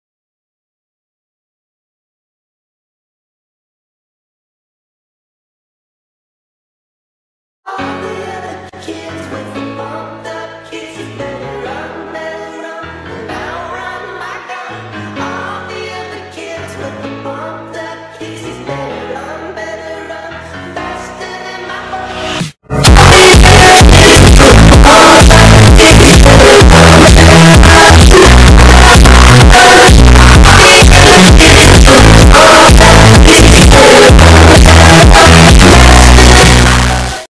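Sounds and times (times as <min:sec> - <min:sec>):
loud distorted bass drop: 0:22.7 - 0:37.2.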